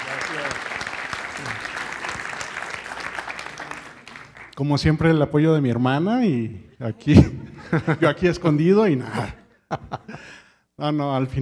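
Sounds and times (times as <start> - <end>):
audience applause: 0.0 - 4.6
speech: 4.6 - 11.4
laughter: 7.3 - 10.4.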